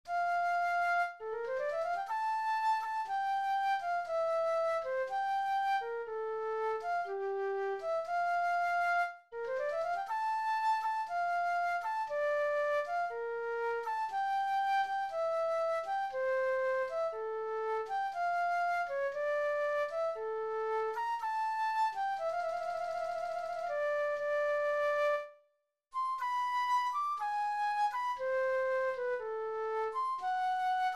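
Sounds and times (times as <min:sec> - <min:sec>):
prelude in F major: 0:00.1 - 0:25.4, 0:26.0 - 0:30.9.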